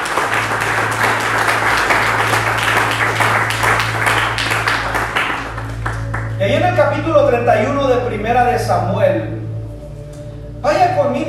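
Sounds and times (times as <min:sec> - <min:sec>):
loud sustained applause from a large crowd: 0:00.0 - 0:06.4
low hum: 0:00.0 - 0:11.2
speech: 0:06.6 - 0:09.4, 0:10.6 - 0:11.2.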